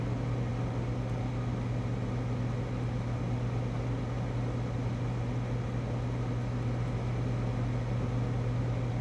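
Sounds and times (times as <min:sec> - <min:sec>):
restaurant kitchen freezer hum: 0:00.0 - 0:08.9.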